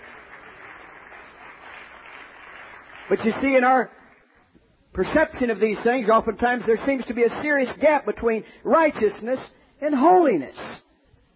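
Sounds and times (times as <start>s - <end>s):
congregation clapping hands in praise of the Lord: 0.0s - 4.6s
speech: 3.1s - 4.0s, 4.9s - 10.8s.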